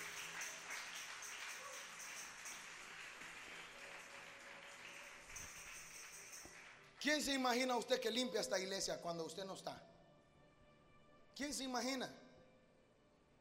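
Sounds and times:
audience clapping: 0.0 - 7.7
speech: 7.0 - 9.9, 11.4 - 12.2.

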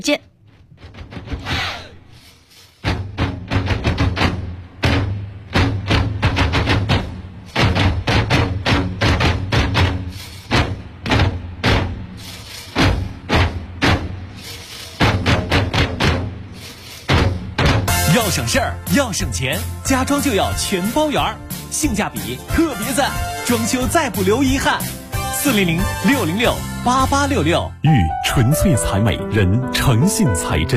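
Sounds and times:
speech: 0.0 - 0.3, 18.4 - 30.7
Taiping drums beating in a loud driving rhythm: 2.8 - 30.7.

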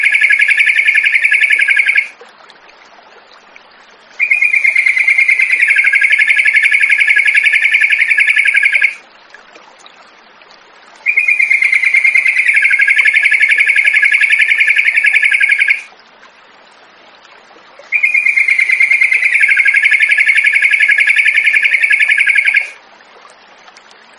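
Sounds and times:
yellow-vented bulbul song of short sharp chirps: 0.0 - 2.1, 4.2 - 9.0, 11.1 - 15.9, 17.9 - 22.8.

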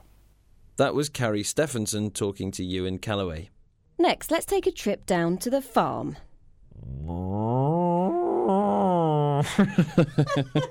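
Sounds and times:
speech: 0.8 - 7.3, 9.4 - 10.6
man imitating a cow mooing: 6.7 - 9.4
man chuckling: 8.9 - 10.6.

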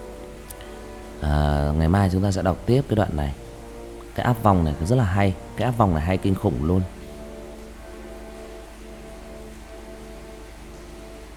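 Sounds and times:
heavy rain: 0.0 - 11.3
low hum: 0.0 - 11.3
speech: 1.2 - 3.4, 4.2 - 7.0.

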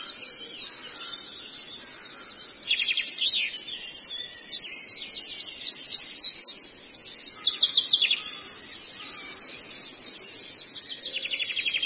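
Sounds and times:
Long-tailed shrike twittering song: 0.0 - 11.8.

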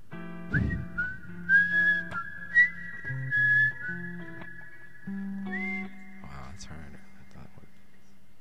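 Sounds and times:
pan flute playing: 0.4 - 6.5.

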